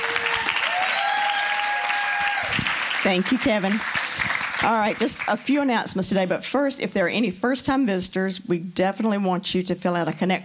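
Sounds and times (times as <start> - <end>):
audience applause: 0.0 - 5.3
speech: 3.1 - 4.0, 4.6 - 10.4.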